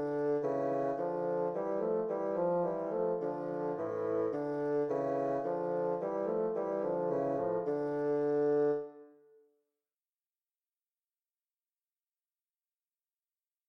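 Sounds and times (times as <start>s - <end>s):
tambourin for two bassoons: 0.0s - 9.1s.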